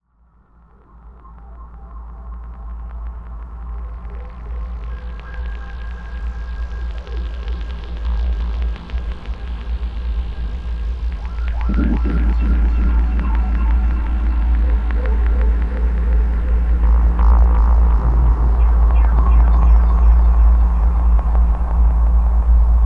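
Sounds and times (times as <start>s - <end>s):
atomar noise: 0.0s - 22.8s.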